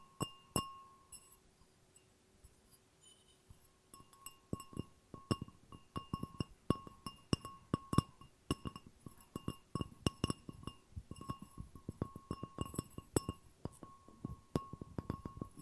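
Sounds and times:
glass tapping: 0:00.0 - 0:01.4, 0:03.0 - 0:15.6.

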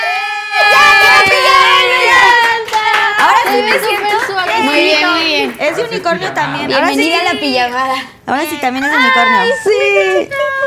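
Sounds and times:
small group clapping: 0:01.0 - 0:06.2
speech: 0:04.6 - 0:10.4.

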